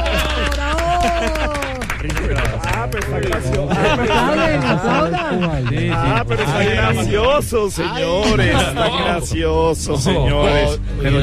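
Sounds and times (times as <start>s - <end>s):
small group clapping in applause: 0.0s - 5.5s
laughter: 0.0s - 10.8s
people chattering: 0.0s - 11.2s
speech: 2.8s - 11.2s.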